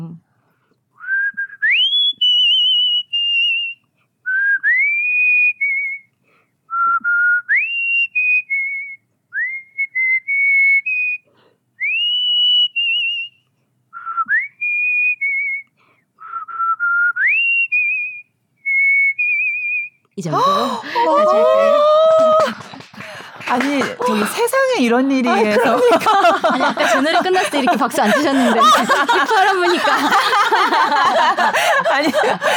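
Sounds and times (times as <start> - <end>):
person whistling a song melody: 1.0 - 13.4, 14.0 - 20.0
speech: 20.2 - 22.0, 23.5 - 32.5
laughter: 25.3 - 32.5.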